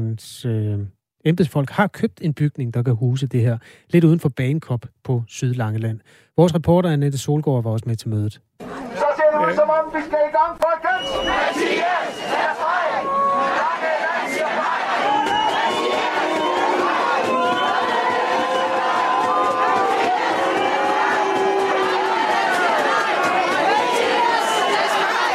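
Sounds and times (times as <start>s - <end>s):
speech: 0.2s - 8.5s, 9.5s - 13.7s
crowd chattering outside a packed hall: 8.6s - 25.3s
raised calls: 10.8s - 25.3s.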